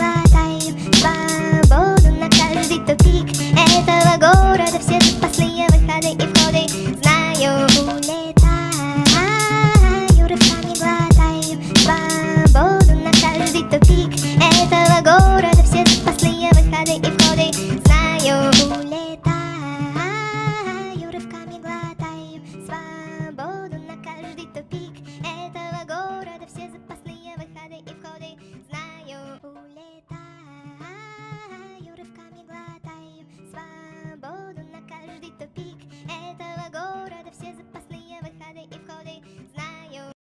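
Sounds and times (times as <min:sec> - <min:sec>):
hood hip hop beats: 0:00.0 - 0:19.5.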